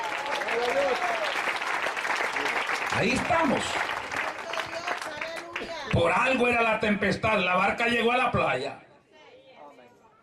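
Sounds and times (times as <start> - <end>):
church congregation applauding during a Spanish-language service: 0.0 - 6.4
speech: 3.0 - 4.0, 6.0 - 8.9.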